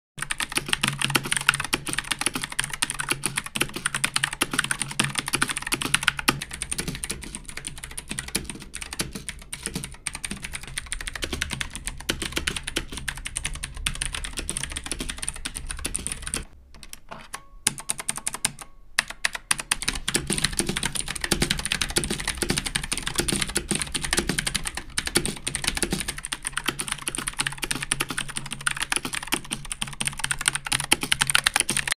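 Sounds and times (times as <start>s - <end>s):
keyboard typing: 0.2s - 31.9s.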